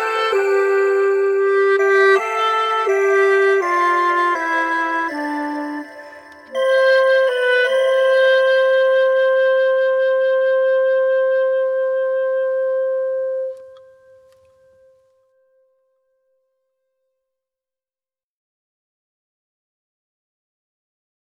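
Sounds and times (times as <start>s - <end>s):
clarinet: 0.0s - 15.4s.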